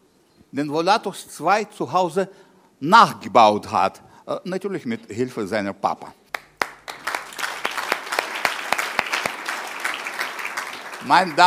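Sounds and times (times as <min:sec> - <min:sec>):
speech: 0:00.5 - 0:06.2, 0:11.0 - 0:11.4
crowd applauding: 0:06.4 - 0:11.4.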